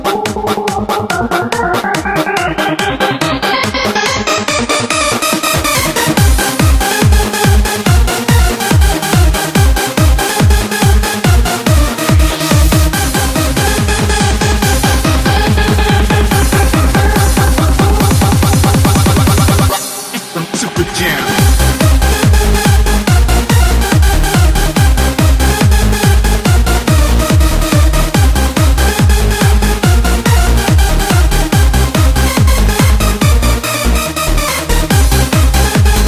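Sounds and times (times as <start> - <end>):
funky bass: 0.0 - 19.8, 20.8 - 36.0.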